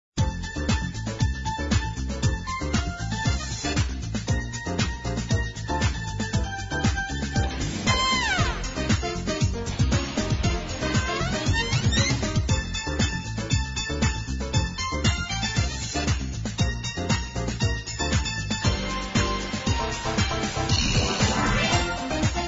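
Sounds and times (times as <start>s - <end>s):
music: 0.2s - 22.4s.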